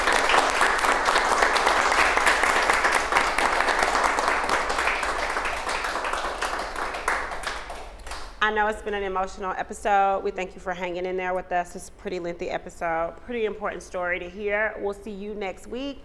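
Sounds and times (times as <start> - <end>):
applause, hands clapping: 0.0 - 8.4
speech: 8.5 - 16.0.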